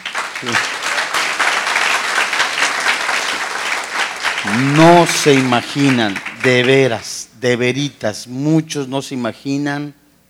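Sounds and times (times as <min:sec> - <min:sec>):
audience applause: 0:00.0 - 0:07.0
speech: 0:00.4 - 0:00.8, 0:04.4 - 0:10.0.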